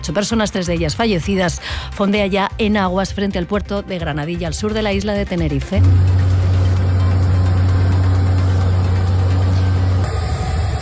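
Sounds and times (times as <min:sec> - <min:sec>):
speech: 0:00.0 - 0:06.2
helicopters flying overhead in an evacuation operation: 0:05.8 - 0:10.7.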